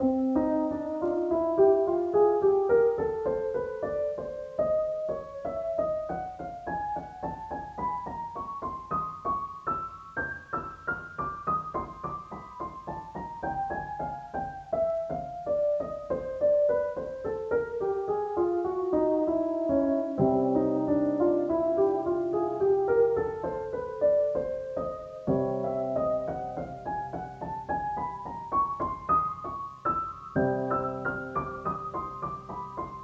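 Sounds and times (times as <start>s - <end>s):
piano track: 0.0s - 33.0s.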